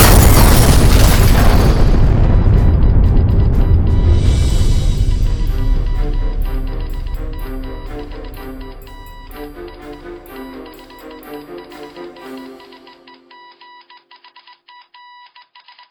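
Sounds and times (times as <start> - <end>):
artillery shell salvo exploding: 0.0 - 10.2.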